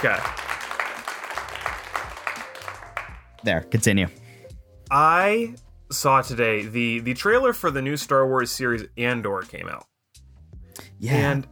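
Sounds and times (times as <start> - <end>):
speech: 0.0 - 0.4, 3.4 - 4.2, 4.9 - 9.9, 11.0 - 11.5
audience clapping: 0.0 - 3.5.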